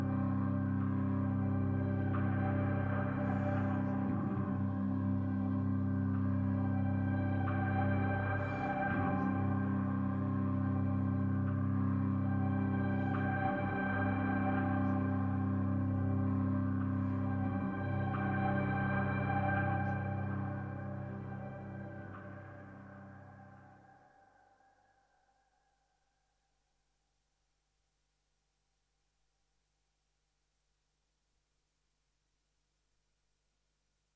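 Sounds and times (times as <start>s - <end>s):
main drone: 0.0s - 24.9s.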